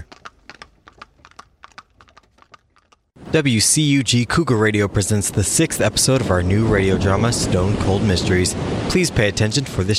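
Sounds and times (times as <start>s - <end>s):
hackney carriage horse hooves clip-clopping, radio drama effect: 0.0s - 3.2s
speech: 3.3s - 9.9s.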